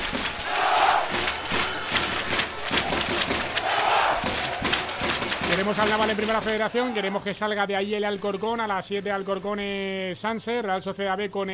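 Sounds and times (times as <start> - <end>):
Navalcarnero football supporters cheering and shouting: 0.0 - 8.1
speech: 5.6 - 11.5.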